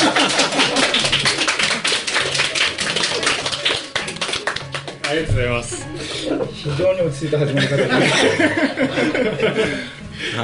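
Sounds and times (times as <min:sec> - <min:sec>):
laughter: 0:00.0 - 0:01.8, 0:05.6 - 0:10.0
audience applause at a live public recording: 0:00.0 - 0:05.2
speech: 0:05.2 - 0:10.4.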